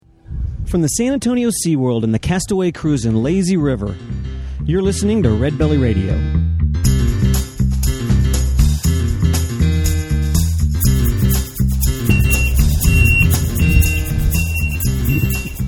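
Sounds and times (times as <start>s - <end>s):
speech: 0.7s - 6.4s
loud continuous music with heavy bass: 3.9s - 15.6s
reversing dump truck beeping: 12.1s - 15.6s.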